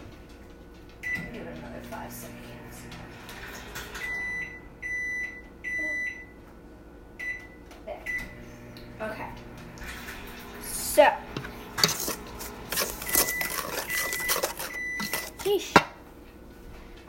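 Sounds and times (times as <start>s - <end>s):
microwave oven humming: 0.7s - 5.8s, 7.2s - 16.3s
person talking: 10.7s - 15.9s
clattering handling noises: 11.3s - 16.0s.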